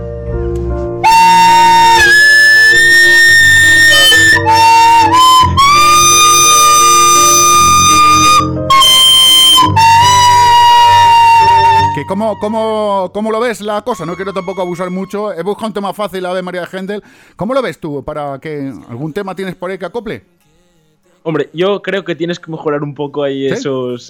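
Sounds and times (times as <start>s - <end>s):
piano accompaniment: 0.0s - 15.2s
home-recorded flute melody: 1.0s - 15.8s
speech: 12.3s - 20.4s, 21.2s - 24.0s.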